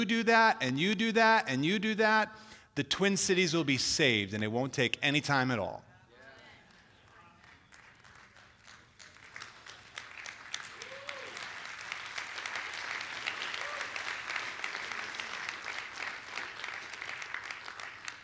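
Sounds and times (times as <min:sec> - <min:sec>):
speech: 0:00.0 - 0:05.9
crowd applauding: 0:06.2 - 0:18.2
faint voices and whoop: 0:10.8 - 0:11.4.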